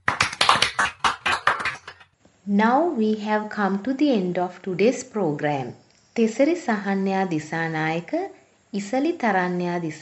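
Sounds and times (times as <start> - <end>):
small group clapping for students: 0.0 - 2.1
speech: 2.5 - 9.9.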